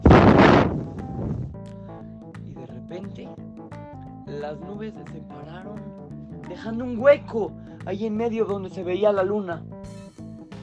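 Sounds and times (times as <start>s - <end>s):
voice imitating blowing at the clouds: 0.0s - 2.1s
speech: 4.4s - 9.7s.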